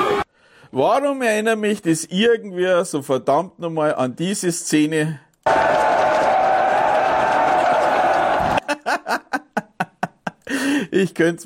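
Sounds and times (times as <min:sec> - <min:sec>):
large crowd yelling: 0:00.0 - 0:00.2, 0:05.5 - 0:08.7
speech: 0:00.7 - 0:05.7, 0:10.9 - 0:11.4
laughter: 0:07.8 - 0:10.5.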